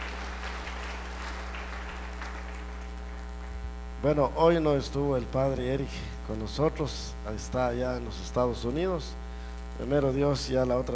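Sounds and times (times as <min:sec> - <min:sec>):
audience applauding: 0:00.0 - 0:03.6
speech: 0:04.0 - 0:09.2, 0:09.8 - 0:10.9.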